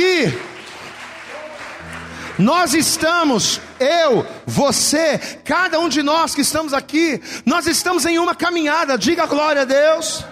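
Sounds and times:
speech: 0.0s - 0.5s, 2.4s - 10.3s
audience applause: 0.0s - 4.2s.

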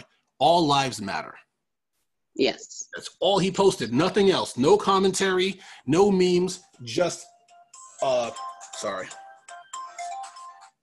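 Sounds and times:
speech: 0.4s - 1.4s, 2.4s - 7.3s, 8.0s - 9.2s
mobile phone default ringtone: 6.7s - 10.8s.

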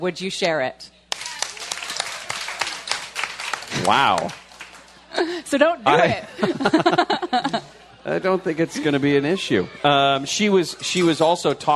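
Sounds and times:
speech: 0.0s - 1.0s, 3.9s - 4.4s, 5.2s - 11.7s
audience applause: 1.1s - 5.1s
laughter: 4.9s - 9.2s.

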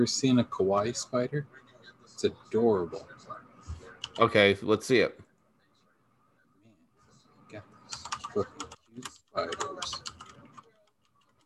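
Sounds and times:
speech: 0.0s - 3.4s, 4.2s - 5.2s, 8.4s - 10.1s
typing on a computer keyboard: 7.9s - 11.4s.

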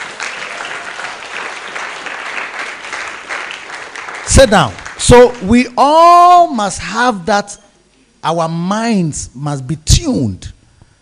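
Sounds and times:
audience clapping: 0.0s - 5.6s
speech: 4.3s - 7.6s, 8.2s - 10.6s.

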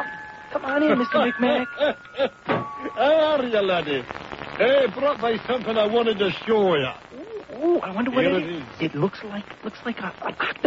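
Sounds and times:
doorbell two-tone chime: 0.0s - 3.4s
speech: 0.6s - 10.6s.

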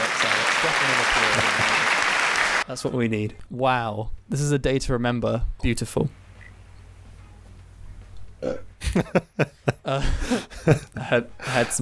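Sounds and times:
laughter: 0.0s - 2.2s, 8.8s - 11.7s
crowd applause: 0.0s - 2.6s
speech: 2.7s - 6.2s, 8.4s - 11.8s.

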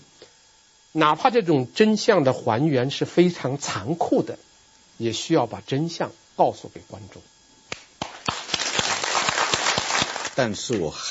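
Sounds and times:
speech: 0.9s - 7.3s, 10.4s - 11.1s
audience applause: 8.0s - 10.9s.

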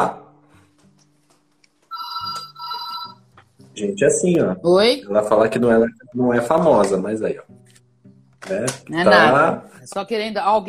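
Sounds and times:
speech: 0.0s - 0.2s, 3.8s - 7.6s, 8.5s - 10.6s
telephone ringing in electronic bursts: 1.9s - 3.3s.

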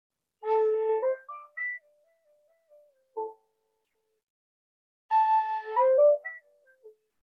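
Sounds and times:
flute notes: 0.4s - 1.8s, 5.1s - 6.5s.

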